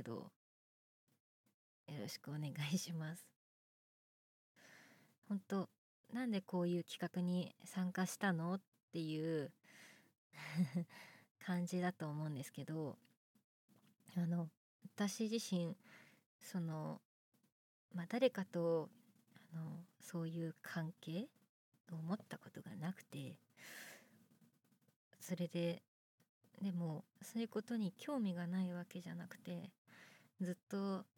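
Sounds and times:
boyish new female voice actress performing: 0.0s - 0.4s, 1.9s - 3.3s, 5.3s - 9.6s, 10.5s - 13.0s, 14.1s - 15.8s, 16.4s - 17.0s, 17.9s - 21.3s, 21.9s - 23.4s, 25.2s - 25.8s, 26.6s - 29.8s, 30.4s - 31.1s.

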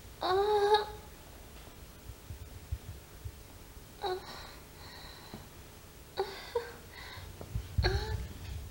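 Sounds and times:
woman moaning while masturbating with a vibrator: 0.2s - 1.1s, 6.2s - 8.4s.

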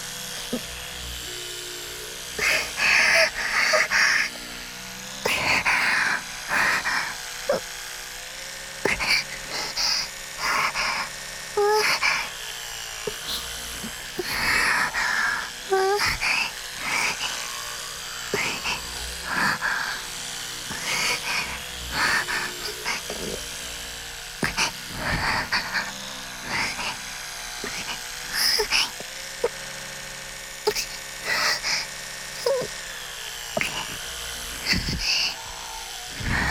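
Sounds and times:
electric toothbrush buzzing: 0.0s - 36.4s
woman breathing: 2.4s - 4.3s, 8.8s - 12.3s, 13.1s - 23.8s, 24.4s - 29.0s, 30.7s - 32.7s, 33.5s - 36.4s.

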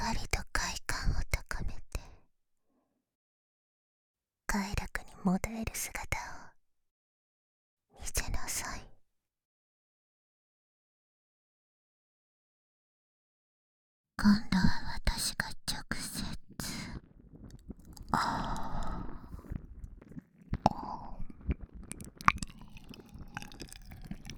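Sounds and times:
binaural whispering ASMR: 0.0s - 2.2s, 4.5s - 6.5s, 8.0s - 9.0s, 14.2s - 17.0s, 20.6s - 21.7s
binaural ear licking ASMR: 17.4s - 24.3s.

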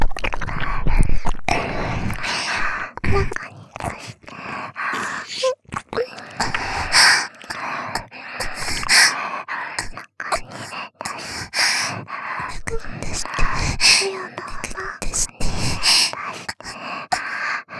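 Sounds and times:
ear licking: 0.0s - 17.7s
person moaning: 13.8s - 14.9s.

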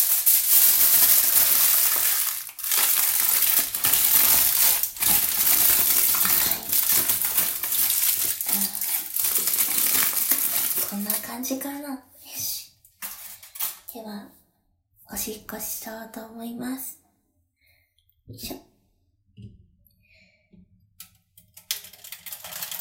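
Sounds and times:
aluminium foil being crumpled in a bathroom: 0.0s - 11.5s, 13.0s - 13.9s, 21.7s - 22.7s
speech: 11.4s - 12.1s, 15.2s - 17.0s, 18.4s - 18.6s.

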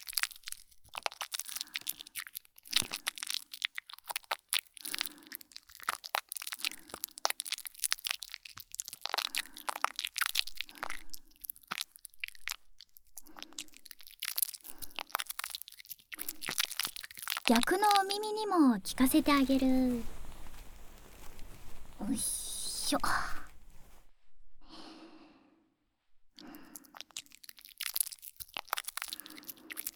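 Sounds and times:
fizz of tiny bubbles: 0.0s - 19.5s, 26.6s - 29.9s
shampoo being worked into a foamy lather: 0.0s - 24.0s, 26.6s - 29.9s
speech: 17.5s - 20.2s, 22.0s - 23.3s.

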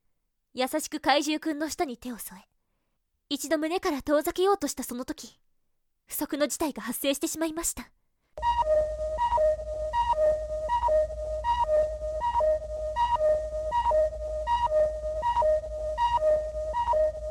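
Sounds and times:
speech: 0.6s - 2.5s, 3.3s - 5.4s, 6.1s - 8.7s
energy timer electronic warning beep: 8.4s - 17.2s
low hum: 8.4s - 17.2s.

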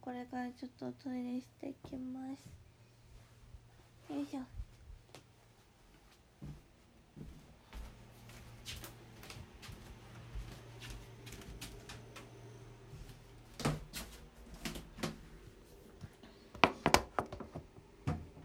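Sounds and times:
speech: 0.3s - 2.6s, 4.1s - 4.6s
quiet footsteps across a hallway floor: 1.9s - 16.7s
floorboards creaking underfoot: 16.6s - 18.2s.

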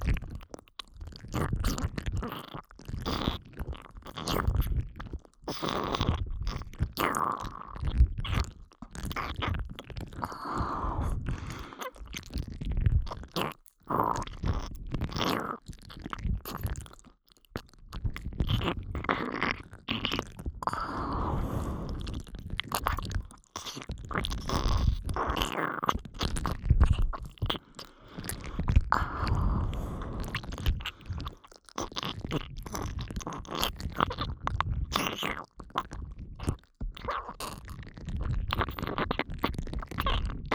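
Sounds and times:
ear licking ASMR in the right ear: 0.1s - 40.5s.

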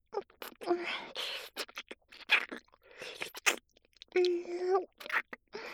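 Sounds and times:
ear licking: 0.2s - 5.4s
deep kissing: 0.4s - 3.6s.

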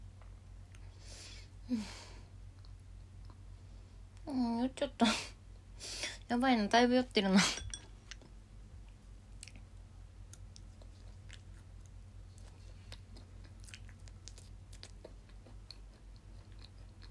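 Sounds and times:
speech: 1.7s - 2.0s, 4.7s - 5.3s, 6.3s - 7.6s
chewing of edamame: 10.3s - 17.0s.

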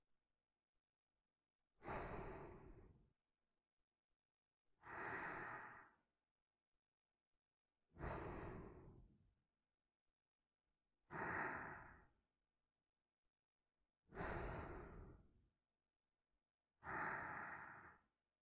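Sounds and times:
person breathing in sleep: 1.8s - 3.0s, 4.8s - 6.0s, 8.0s - 9.1s, 11.1s - 12.2s, 14.1s - 15.3s, 16.8s - 18.1s.

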